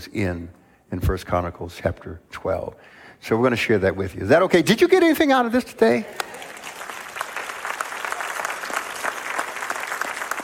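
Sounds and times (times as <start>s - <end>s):
speech: 0.0s - 6.5s
small group clapping: 6.1s - 10.4s.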